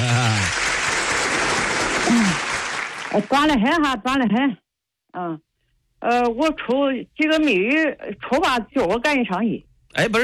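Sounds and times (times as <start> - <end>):
audience applause: 0.0 - 3.4
speech: 3.1 - 10.2.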